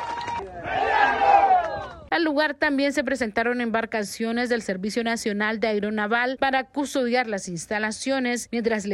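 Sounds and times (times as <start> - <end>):
protest crowd shouting slogans against a mining company: 0.5 - 2.1
speech: 2.5 - 8.9.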